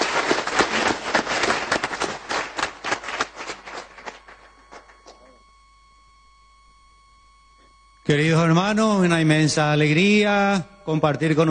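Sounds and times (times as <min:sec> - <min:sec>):
warm audience applause: 0:00.0 - 0:05.2
speech: 0:08.1 - 0:11.4.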